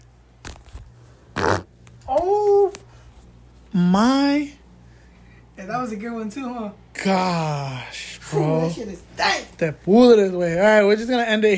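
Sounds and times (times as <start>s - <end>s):
fart: 1.3s - 1.7s
speech: 2.1s - 2.8s, 3.8s - 4.6s, 5.6s - 11.5s.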